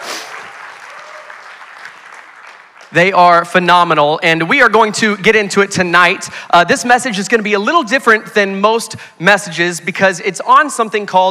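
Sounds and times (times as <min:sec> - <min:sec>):
church crowd applauding: 0:00.0 - 0:03.0
scattered whoops: 0:00.2 - 0:01.9
speech: 0:02.9 - 0:11.2.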